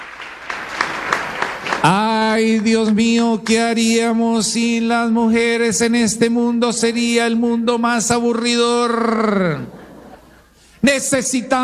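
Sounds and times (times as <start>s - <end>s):
applause from women of a church congregation: 0.0s - 2.9s
speech: 1.8s - 9.8s, 10.8s - 11.6s.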